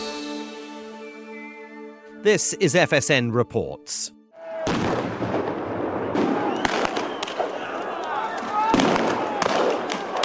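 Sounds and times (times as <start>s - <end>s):
speech: 2.2s - 4.8s
gunshots during anti-government protests in Kiev, Ukraine: 4.6s - 7.6s, 8.7s - 10.2s.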